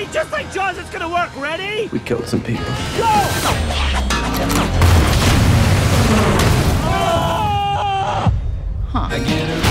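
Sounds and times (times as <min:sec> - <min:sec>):
speech: 0:00.0 - 0:05.2, 0:08.9 - 0:09.6
propane tank explosion blowing up a car: 0:04.8 - 0:08.6.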